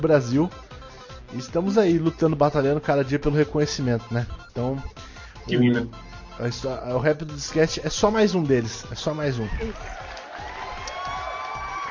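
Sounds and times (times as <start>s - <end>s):
speech: 0.0s - 0.6s, 1.3s - 10.0s
applause: 9.5s - 11.8s.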